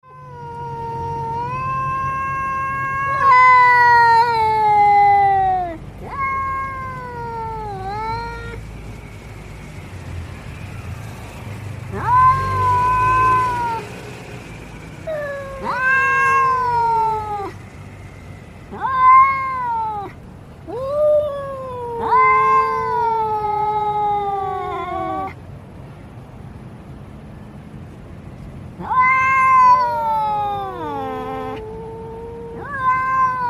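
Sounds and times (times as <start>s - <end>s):
domestic cat yowling and meowing: 0.0s - 8.6s, 11.9s - 13.9s, 15.1s - 17.6s, 18.7s - 25.4s, 28.8s - 33.4s.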